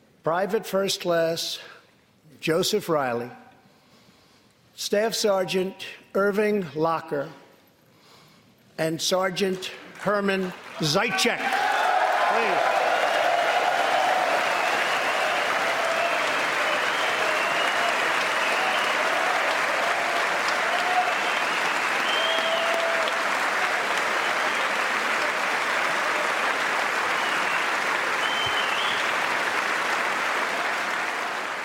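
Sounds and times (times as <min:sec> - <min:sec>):
speech: 0:00.2 - 0:01.8, 0:02.4 - 0:03.4, 0:04.8 - 0:07.4, 0:08.8 - 0:11.6
audience applause for veterans: 0:09.9 - 0:31.6.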